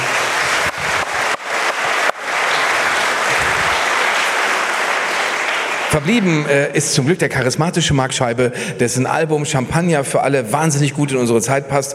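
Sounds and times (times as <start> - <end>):
audience applause: 0.0 - 6.9
speech: 6.0 - 11.9.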